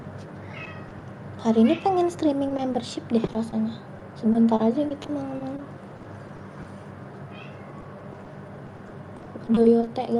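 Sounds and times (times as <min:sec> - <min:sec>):
cat meowing: 0:00.4 - 0:00.9, 0:07.3 - 0:08.0
speech: 0:01.4 - 0:05.8, 0:09.5 - 0:10.1.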